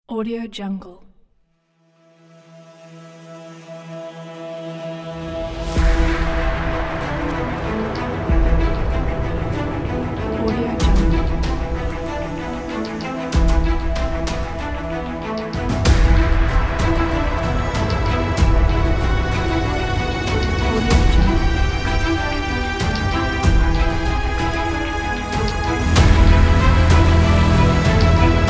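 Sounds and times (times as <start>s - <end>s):
tense cinematic music: 1.8s - 28.4s.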